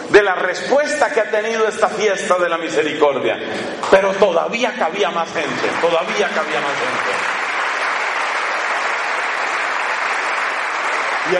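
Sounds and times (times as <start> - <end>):
speech: 0.2 - 7.4
audience applause: 5.4 - 11.3.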